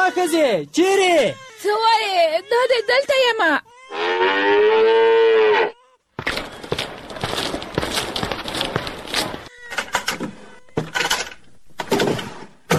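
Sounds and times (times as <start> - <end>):
speech: 0.1 - 5.1
cow mooing in a cowshed: 3.8 - 5.9
noisy rustling and clatter: 6.2 - 12.7.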